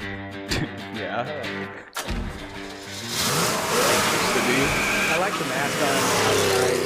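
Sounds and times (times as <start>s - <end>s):
speech: 0.6s - 2.2s, 4.6s - 6.8s
Corvette engine revving while driven hard: 2.8s - 6.8s.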